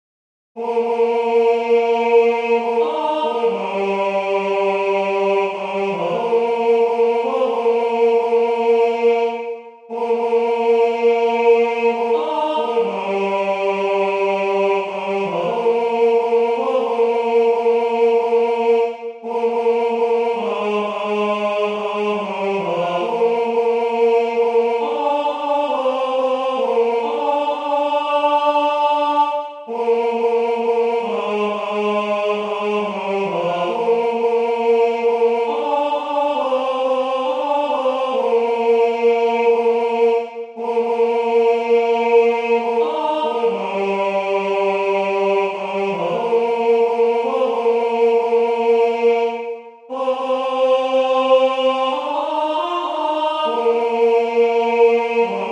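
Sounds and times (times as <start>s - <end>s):
tenor voices: 0.6s - 55.4s.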